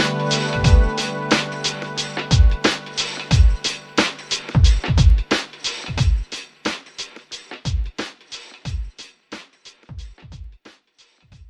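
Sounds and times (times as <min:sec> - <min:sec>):
dance music: 0:00.0 - 0:06.4.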